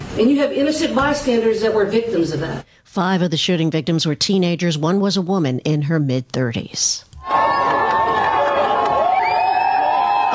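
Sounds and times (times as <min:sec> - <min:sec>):
speech: 0:00.2 - 0:07.1
adoring fans cheering at the UConn men's basketball championship parade in Hartford: 0:07.2 - 0:10.3.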